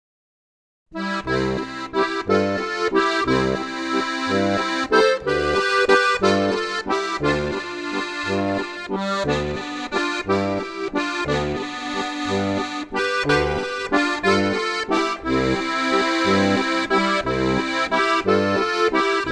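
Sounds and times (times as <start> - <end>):
waltz music: 1.0 - 19.3.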